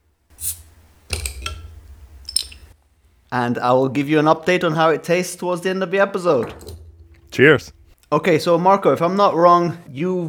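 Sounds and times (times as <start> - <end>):
beer bottle being opened: 0.3 - 3.3
speech: 3.3 - 6.7, 7.4 - 10.2.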